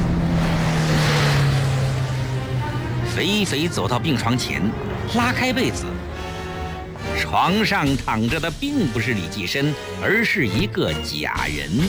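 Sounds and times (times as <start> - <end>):
car driving away quickly: 0.0 - 7.2
speech: 3.2 - 6.1, 7.3 - 11.8.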